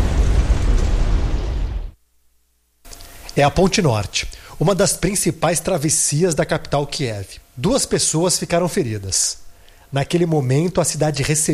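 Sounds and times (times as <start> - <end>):
drone strike explosion: 0.0 - 2.0
speech: 3.4 - 11.5.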